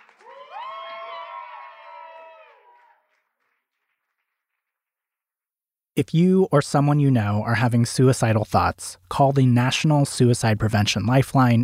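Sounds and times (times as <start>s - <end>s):
crowd cheering and whooping: 0.0s - 3.1s
speech: 6.0s - 11.6s.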